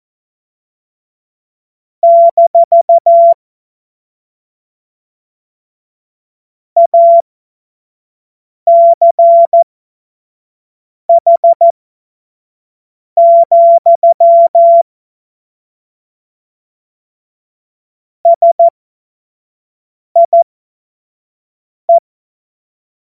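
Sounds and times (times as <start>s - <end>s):
morse code beeps: 2.0s - 3.4s, 6.8s - 7.2s, 8.7s - 9.6s, 11.1s - 11.7s, 13.2s - 14.8s, 18.3s - 18.7s, 20.2s - 20.4s.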